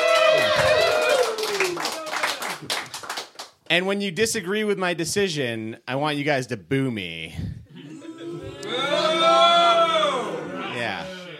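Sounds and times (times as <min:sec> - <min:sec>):
audience cheering: 0:00.0 - 0:02.8, 0:07.8 - 0:11.3
speech: 0:03.7 - 0:07.6.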